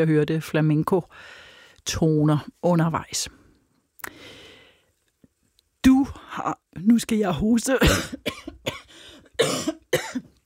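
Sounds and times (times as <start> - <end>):
speech: 0.0 - 3.4, 6.4 - 8.5, 9.4 - 9.8
person coughing from something caught in throat: 7.8 - 10.4.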